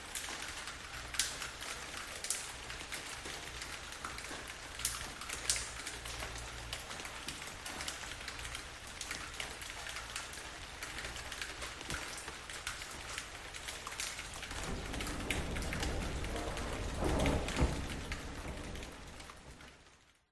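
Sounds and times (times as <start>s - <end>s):
loud rain: 0.0s - 20.2s
thunder: 14.3s - 19.9s.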